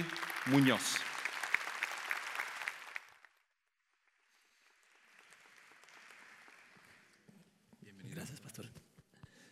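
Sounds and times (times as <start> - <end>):
speech: 0.0 - 1.0
audience applause: 0.0 - 7.2.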